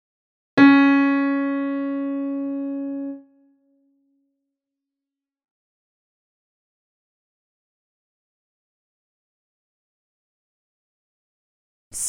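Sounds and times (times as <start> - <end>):
solo lead melody: 0.6 - 3.6.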